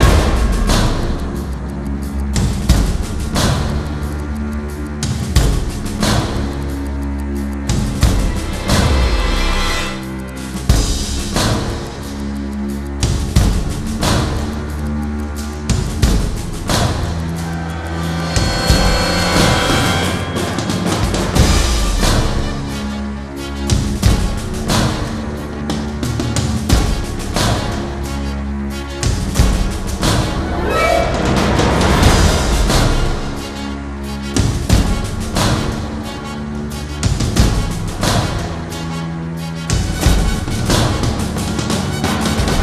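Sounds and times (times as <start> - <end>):
space action music loop: 0.0 - 42.6.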